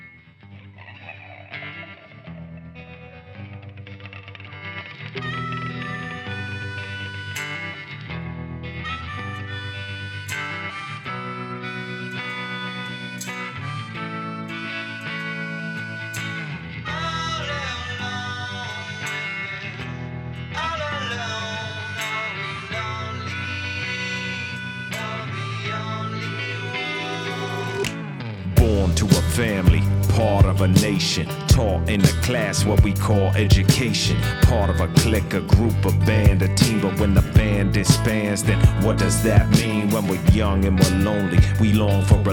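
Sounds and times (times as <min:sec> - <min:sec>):
blues hip-hop rock song playing: 0:00.8 - 0:42.3
speech: 0:30.6 - 0:42.3.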